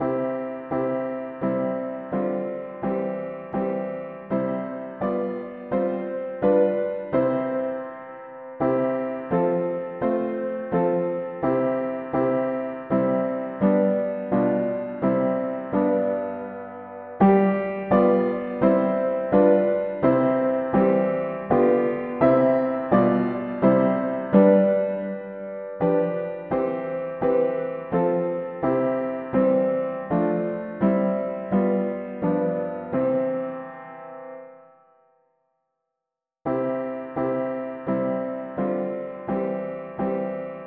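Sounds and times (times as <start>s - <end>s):
mono piano playing hymns: 0.0s - 34.8s, 36.5s - 40.6s.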